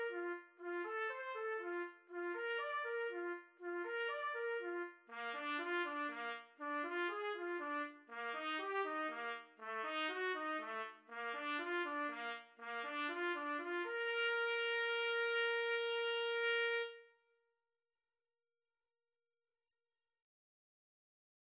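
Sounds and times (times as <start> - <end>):
trumpet duet: 0.0 - 17.1.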